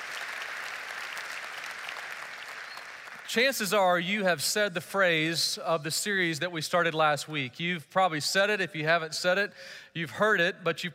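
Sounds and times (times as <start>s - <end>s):
church congregation applauding to welcome their church family: 0.0s - 3.9s
speech: 3.3s - 10.9s.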